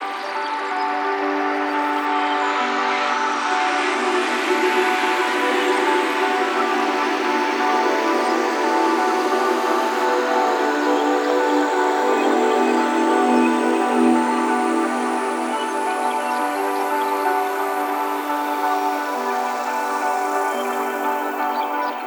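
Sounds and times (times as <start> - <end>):
big evolving synth pad in E: 0.0 - 22.0.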